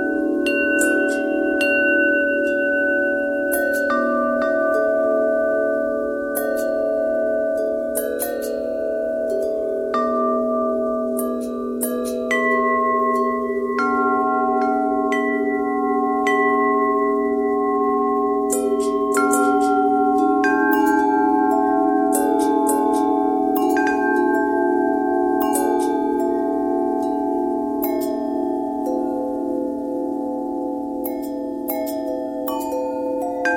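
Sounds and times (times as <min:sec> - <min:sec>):
long bell with thread noise: 0:00.0 - 0:33.5.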